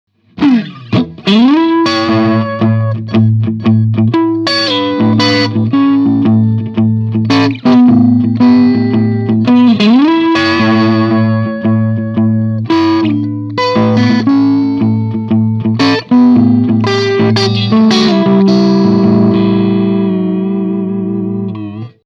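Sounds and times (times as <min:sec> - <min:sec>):
rough blues with mild distortion: 0:00.2 - 0:22.0.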